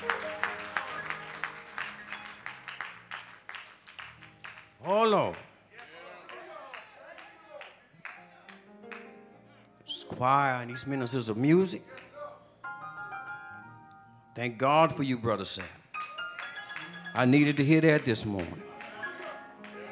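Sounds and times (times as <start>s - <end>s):
audience clapping hands in praise: 0.0s - 9.1s, 15.5s - 19.9s
speech: 4.8s - 5.5s, 10.2s - 12.1s, 14.4s - 15.8s, 17.2s - 18.7s.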